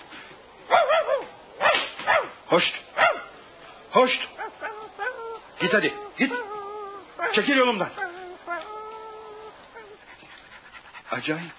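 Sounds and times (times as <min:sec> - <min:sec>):
dog barking: 0:00.7 - 0:02.4, 0:03.0 - 0:03.3
speech: 0:02.5 - 0:02.8, 0:03.9 - 0:04.3, 0:05.6 - 0:06.6, 0:07.3 - 0:08.0, 0:11.2 - 0:11.5.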